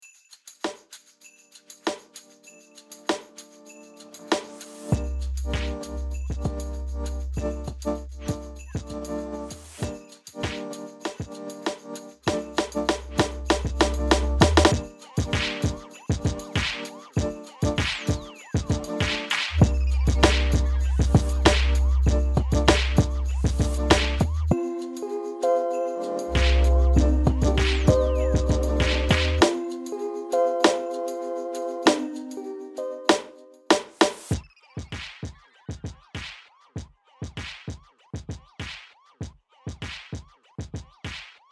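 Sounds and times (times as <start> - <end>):
music beat: 4.2 - 36.4.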